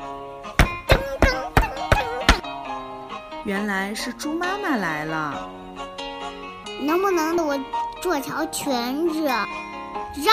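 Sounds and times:
soft melodic musical tone: 0.0 - 10.3
knocking on a door: 0.6 - 2.4
speech: 3.4 - 5.6, 6.8 - 10.3.

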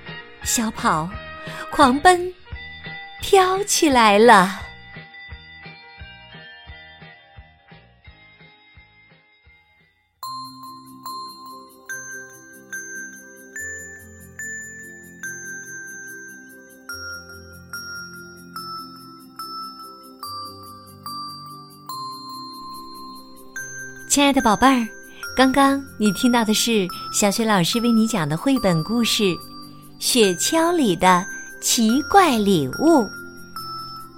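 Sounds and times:
speech: 0.4 - 2.4, 3.2 - 4.7, 24.2 - 33.2
bright ringing bells playing a tinkling melody: 10.2 - 34.1.

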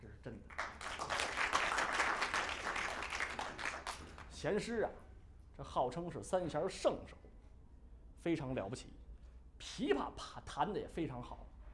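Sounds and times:
audience applause: 0.6 - 4.2
speech: 4.4 - 7.2, 8.2 - 9.0, 9.6 - 11.5.

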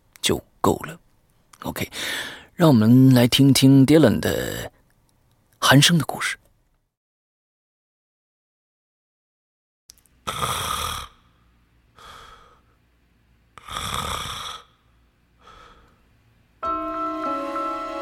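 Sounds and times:
speech: 0.3 - 1.0, 1.6 - 4.7, 5.6 - 6.4
heavy snoring: 10.3 - 11.3, 13.6 - 14.8
sustained musical tone: 16.6 - 18.0.

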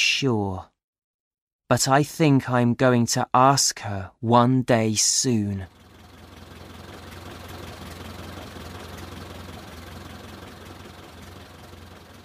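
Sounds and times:
speech: 0.2 - 0.7, 1.7 - 5.8
taxi engine idling: 5.7 - 12.2.

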